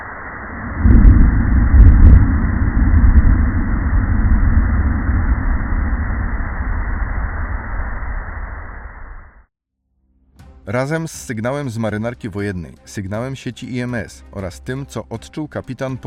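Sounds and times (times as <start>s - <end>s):
hydrophone recording of a submersible implosion: 0.4s - 9.5s
speech: 10.7s - 16.0s.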